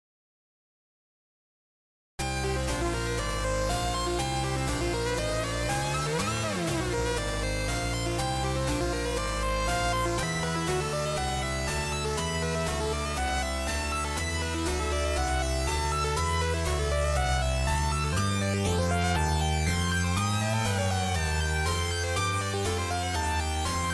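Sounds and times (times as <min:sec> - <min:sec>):
analog synthesizer: 0:02.2 - 0:23.9.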